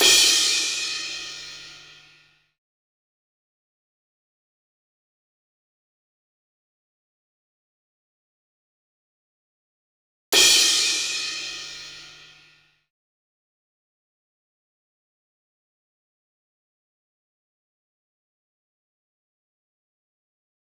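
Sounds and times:
crash cymbal: 0.0s - 1.8s, 10.4s - 12.2s.

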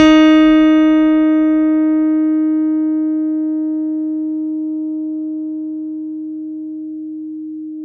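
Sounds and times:
CP80 electric piano note D sharp 4: 0.0s - 7.8s.

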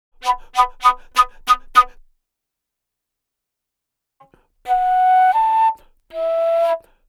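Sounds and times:
Asian wood flute: 0.2s - 2.0s, 4.6s - 7.0s.

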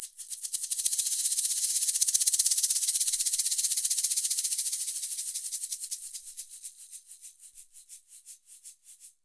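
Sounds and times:
fast percussion: 0.0s - 8.1s.

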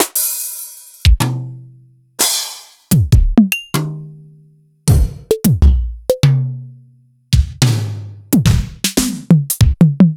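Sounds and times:
Yamaha RY20 drum machine samples sliced: 0.0s - 1.4s, 2.2s - 3.9s, 4.9s - 6.4s, 7.4s - 10.1s.

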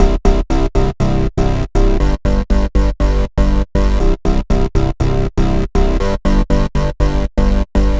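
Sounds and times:
bass: 0.0s - 7.9s.

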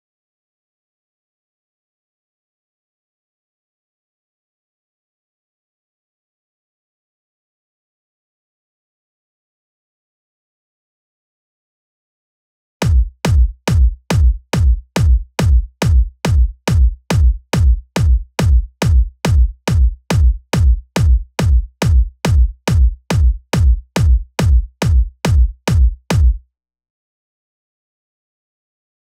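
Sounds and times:
140 BPM kick drum: 12.8s - 26.4s.

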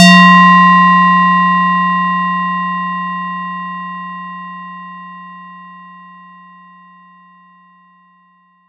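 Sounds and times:
ringing effect: 0.0s - 2.9s.

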